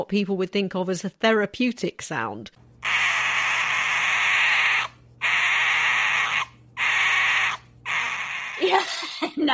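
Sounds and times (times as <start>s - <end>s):
speech: 0.0s - 2.6s
fox vocalizations: 2.8s - 8.9s.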